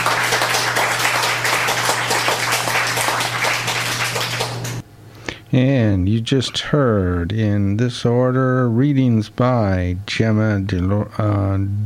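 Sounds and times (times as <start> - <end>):
audience applause: 0.0 - 4.8
low steady hum: 0.0 - 11.8
speech: 5.5 - 11.8.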